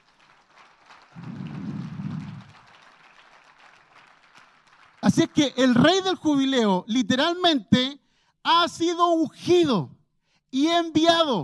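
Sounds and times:
audience applauding loudly: 0.0s - 5.9s
speech: 5.1s - 11.4s.

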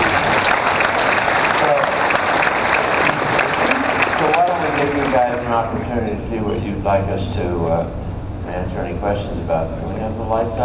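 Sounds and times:
applause: 0.0s - 5.5s
speech: 5.6s - 10.6s.

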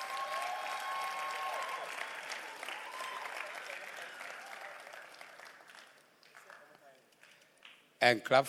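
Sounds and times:
audience clapping: 0.0s - 7.9s.

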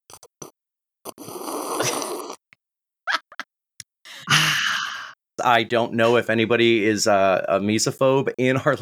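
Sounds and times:
loud sip of tea: 0.1s - 2.4s
speech: 5.4s - 8.8s.

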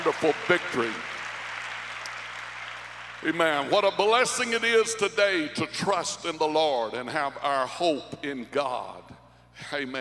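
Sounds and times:
speech: 0.0s - 1.1s, 3.2s - 9.9s
audience clapping hands: 0.0s - 3.7s.

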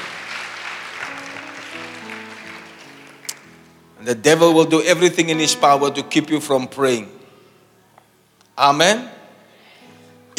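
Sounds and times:
audience clapping: 0.0s - 3.7s
speech: 4.0s - 7.2s, 8.6s - 9.2s.

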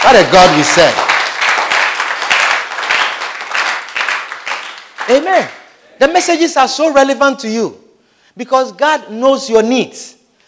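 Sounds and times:
audience applause: 0.0s - 5.6s
speech: 0.1s - 1.0s, 5.1s - 7.8s, 8.4s - 10.2s.

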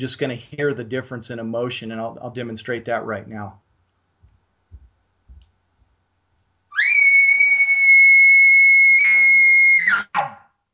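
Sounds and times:
speech: 0.0s - 3.6s
aggressive emotional imitated elk bugle: 6.7s - 10.5s.

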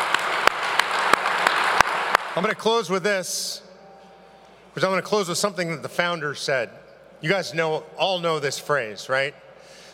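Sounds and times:
crowd applause: 0.0s - 2.4s
speech: 2.4s - 3.7s, 4.8s - 9.8s.

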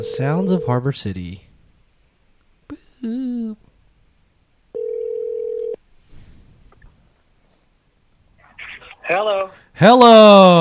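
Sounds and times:
telephone line ringing as a call is patched through: 0.0s - 0.8s, 4.7s - 5.8s
speech: 0.0s - 1.5s, 3.0s - 3.7s, 9.1s - 10.5s
low noise: 0.0s - 10.5s.

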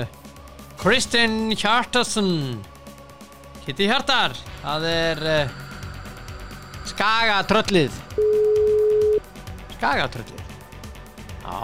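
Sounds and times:
speech: 0.8s - 2.7s, 3.7s - 5.6s, 6.9s - 8.3s, 9.8s - 10.4s, 11.4s - 11.6s
telephone tone as a call is placed: 8.2s - 9.2s.

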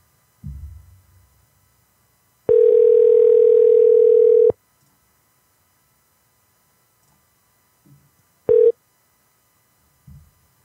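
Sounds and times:
faint low thumps: 0.4s - 1.5s
phone ringing on an unanswered call: 2.5s - 4.6s, 8.5s - 8.8s.

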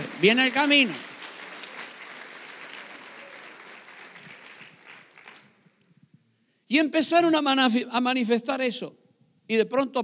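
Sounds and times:
audience applause: 0.0s - 5.6s
speech: 0.2s - 1.1s, 6.7s - 10.0s.

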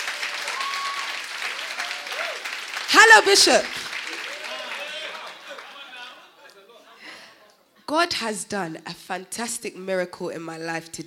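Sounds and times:
audience applause: 0.0s - 6.4s
speech: 3.0s - 3.8s, 7.9s - 11.0s
laughter: 4.1s - 7.8s.

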